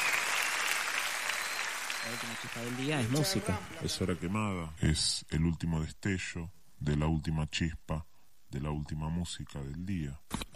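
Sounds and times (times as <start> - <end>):
audience applause: 0.0 - 4.3
speech: 2.0 - 10.5.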